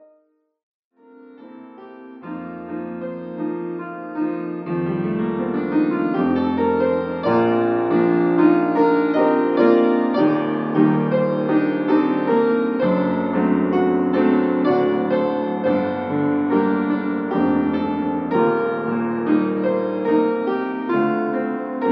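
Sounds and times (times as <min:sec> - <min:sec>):
piano piece: 0:00.0 - 0:00.3, 0:01.0 - 0:21.9.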